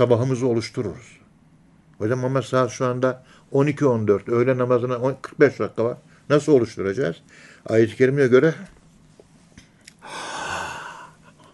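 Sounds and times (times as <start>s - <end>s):
speech: 0.0s - 1.2s, 2.0s - 8.8s
deep breath in: 10.0s - 11.5s.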